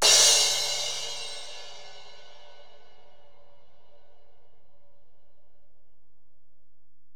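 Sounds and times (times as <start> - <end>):
ride cymbal on Alesis DM-PRO: 0.0 - 3.0.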